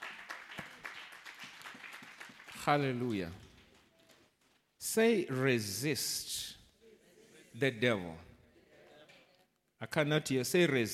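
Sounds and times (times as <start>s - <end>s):
congregation clapping hands at a Sunday church service: 0.0s - 4.7s, 10.2s - 10.9s
speech: 2.6s - 3.4s, 4.9s - 6.5s, 7.6s - 8.3s, 9.8s - 10.9s.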